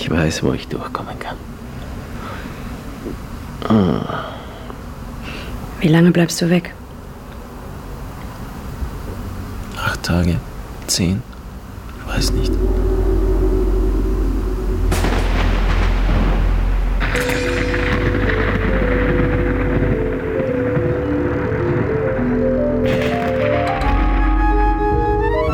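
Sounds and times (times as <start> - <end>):
speech: 0.1 - 1.6, 3.0 - 4.4, 5.8 - 6.8, 10.0 - 11.3, 12.1 - 13.0
thunderstorm thunder: 11.9 - 23.6
sustained musical tones: 11.9 - 25.5.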